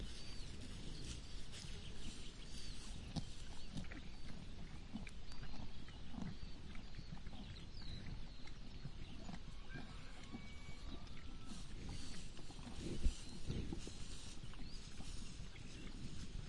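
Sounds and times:
cow chewing and breathing: 0:00.0 - 0:16.4.

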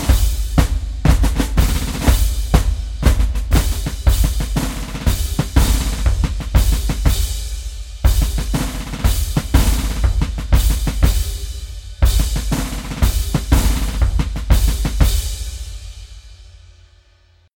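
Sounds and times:
marching drums drum solo: 0:00.0 - 0:16.6.

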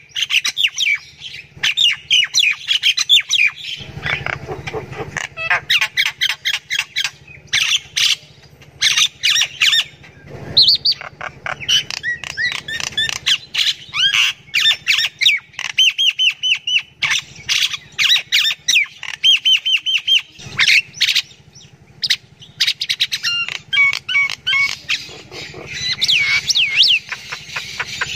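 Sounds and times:
low steady hum: 0:00.0 - 0:28.1
myna calling: 0:03.8 - 0:15.9, 0:23.2 - 0:28.1.

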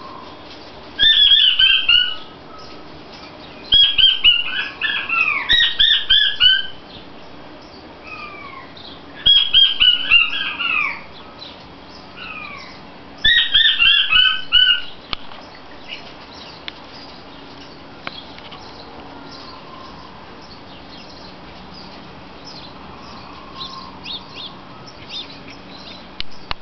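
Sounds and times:
king quail calling: 0:01.0 - 0:06.8, 0:08.0 - 0:15.0, 0:23.0 - 0:26.0.

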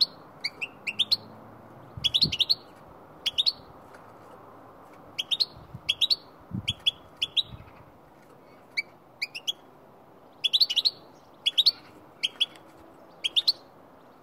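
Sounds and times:
goldfinch chirps: 0:00.0 - 0:01.3, 0:02.0 - 0:03.7, 0:05.2 - 0:07.8, 0:08.7 - 0:09.7, 0:10.3 - 0:14.2.

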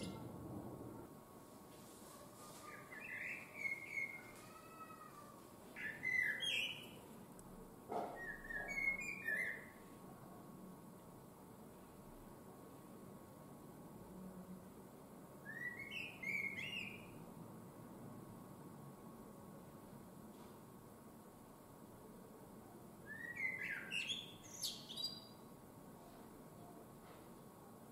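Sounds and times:
faint background hiss: 0:00.0 - 0:27.9
common blackbird singing: 0:02.8 - 0:04.3, 0:05.8 - 0:07.0, 0:08.2 - 0:09.8, 0:15.5 - 0:17.2, 0:23.1 - 0:25.4.

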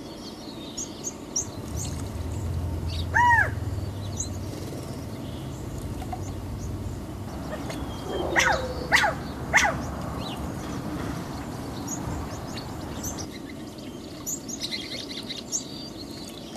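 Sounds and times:
small birds chirping: 0:00.0 - 0:16.5
low rumble: 0:01.5 - 0:13.3
California quail call: 0:03.0 - 0:03.6, 0:07.5 - 0:09.8.

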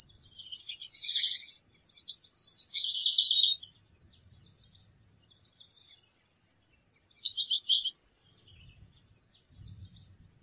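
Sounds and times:
Gouldian finch: 0:00.0 - 0:03.8, 0:07.2 - 0:08.6.

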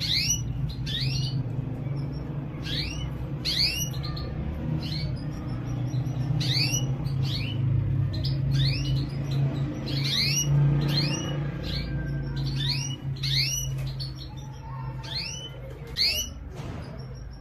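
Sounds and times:
domestic canary chirps: 0:00.0 - 0:17.3.

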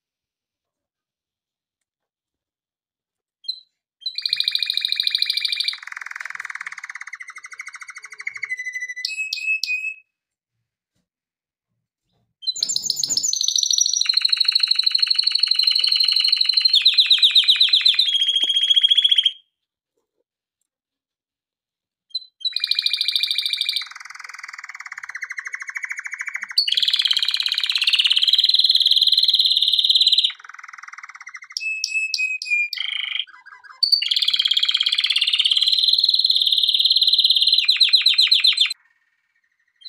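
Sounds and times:
canary song of rapid trills: 0:03.4 - 0:10.0, 0:12.4 - 0:19.4, 0:22.1 - 0:39.8.

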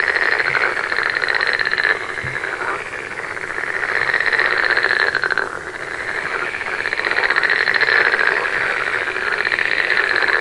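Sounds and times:
frog chorus croaking: 0:00.0 - 0:10.3.

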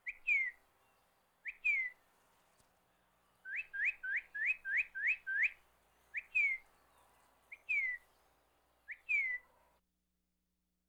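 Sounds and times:
northern cardinal whistling: 0:00.0 - 0:00.6, 0:01.4 - 0:02.0, 0:03.5 - 0:05.6, 0:08.9 - 0:09.4.

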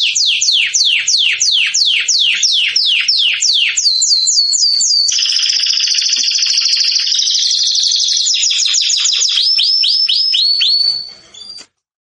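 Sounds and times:
canary trilling song: 0:00.0 - 0:11.7.

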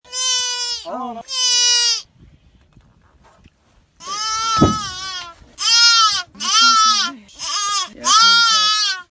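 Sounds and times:
fawn bleating: 0:00.1 - 0:02.1, 0:04.0 - 0:09.1.

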